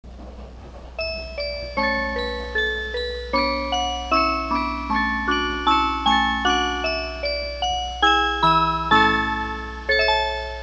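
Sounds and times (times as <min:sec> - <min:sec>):
chime: 0:01.0 - 0:10.6.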